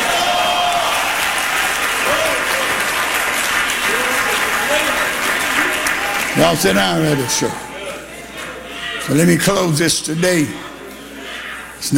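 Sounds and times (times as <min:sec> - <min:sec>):
audience clapping hands: 0:00.0 - 0:07.3
speech: 0:06.4 - 0:07.6, 0:09.1 - 0:10.7, 0:11.8 - 0:11.9.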